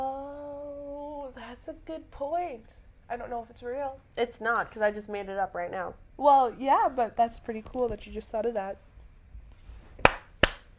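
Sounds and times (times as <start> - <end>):
speech: 1.6 - 8.9
single hand clap: 10.0 - 10.7.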